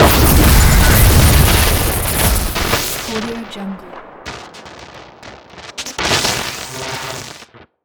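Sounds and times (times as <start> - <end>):
energy lightning strike: 0.0 - 6.8.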